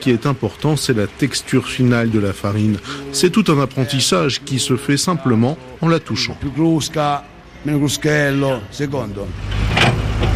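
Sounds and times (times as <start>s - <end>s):
speech: 0.0s - 10.0s
tractors working outside: 0.0s - 10.3s.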